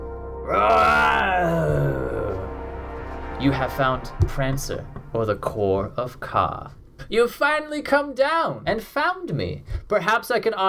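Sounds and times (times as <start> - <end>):
zombie roaring: 0.4 - 2.6
speech: 0.5 - 1.6, 3.4 - 10.6.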